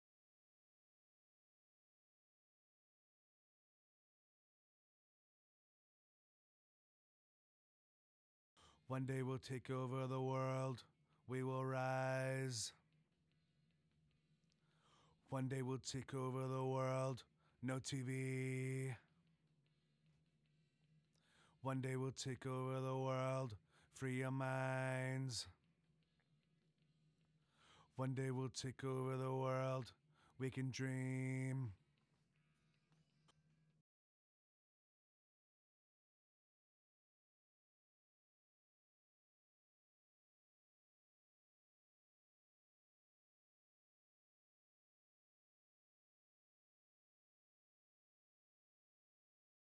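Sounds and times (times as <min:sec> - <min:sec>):
low verse vocal: 0:08.9 - 0:12.7, 0:15.4 - 0:19.0, 0:21.6 - 0:25.5, 0:28.0 - 0:31.7.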